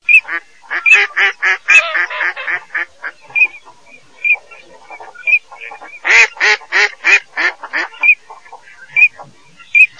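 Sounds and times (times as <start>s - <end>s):
mallard: 0.1s - 9.9s.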